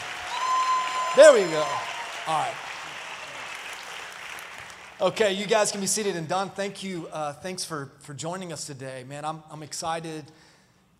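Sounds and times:
audience clapping: 0.0s - 6.1s
speech: 1.2s - 2.7s, 5.0s - 10.9s.

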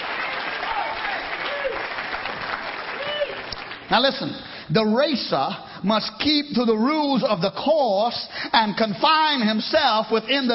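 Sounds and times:
audience clapping hands: 0.0s - 4.4s
speech: 3.9s - 10.5s.

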